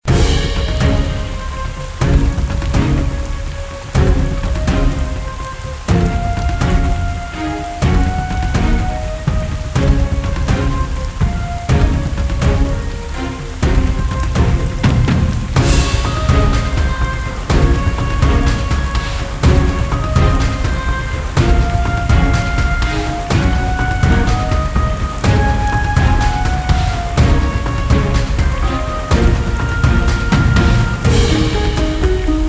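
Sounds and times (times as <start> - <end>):
map background music: 0.0 - 32.4
rain: 0.0 - 32.4.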